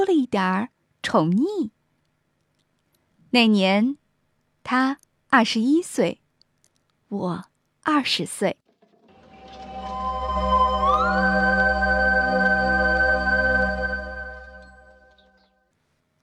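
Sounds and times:
speech: 0.0s - 1.8s, 3.3s - 4.0s, 4.7s - 6.2s, 7.1s - 8.6s
text message alert chord tone: 9.2s - 15.2s.

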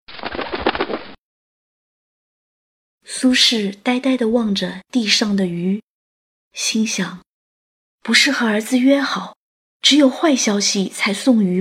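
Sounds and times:
crows' wings flapping as birds burst from branches: 0.1s - 1.2s
speech: 3.1s - 5.9s, 6.6s - 7.3s, 8.0s - 11.5s.

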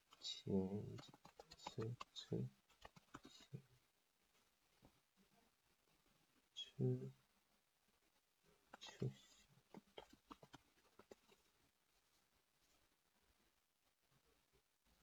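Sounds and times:
quiet voice murmuring: 0.1s - 3.7s, 6.5s - 7.3s, 8.5s - 11.5s
speech: 0.2s - 1.2s, 1.8s - 2.6s, 6.8s - 7.2s
typing Chinese text on a computer keyboard: 1.0s - 3.4s.

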